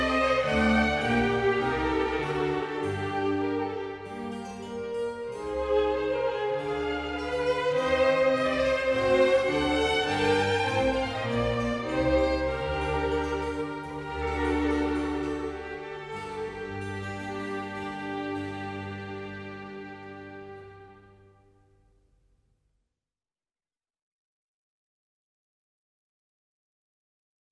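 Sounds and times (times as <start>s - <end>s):
concerto music: 0.0s - 21.5s.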